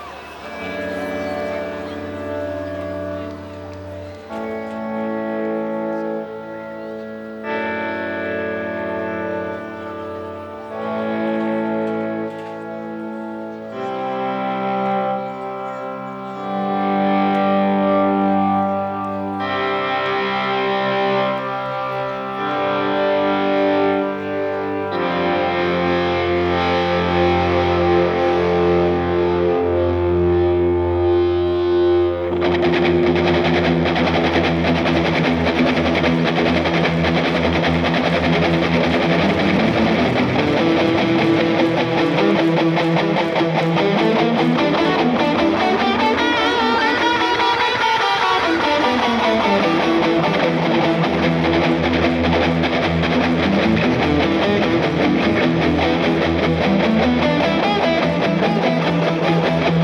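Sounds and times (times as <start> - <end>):
guitar solo: 0.0 - 59.8.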